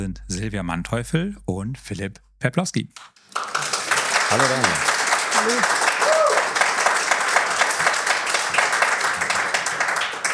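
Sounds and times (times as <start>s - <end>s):
speech: 0.0s - 3.4s, 4.3s - 5.9s
audience applause: 3.2s - 10.3s
whoops: 4.4s - 6.7s.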